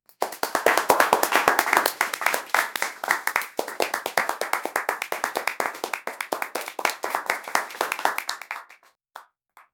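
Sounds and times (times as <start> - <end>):
audience of several people: 0.2 - 8.8.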